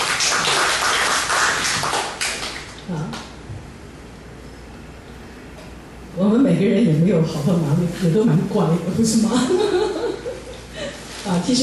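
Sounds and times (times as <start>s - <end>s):
audience clapping hands: 0.0s - 2.8s
speech: 6.6s - 10.3s, 11.3s - 11.6s
laughter: 9.1s - 10.9s.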